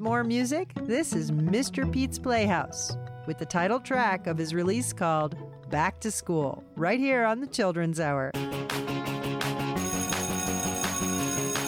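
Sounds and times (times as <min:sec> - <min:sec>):
speech: 0:00.0 - 0:09.2
school bell as bright electronic chime: 0:09.8 - 0:11.6.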